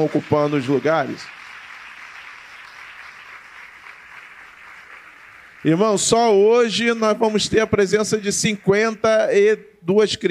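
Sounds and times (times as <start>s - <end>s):
speech: 0.0s - 1.4s, 5.6s - 10.2s
audience applause: 0.0s - 6.7s.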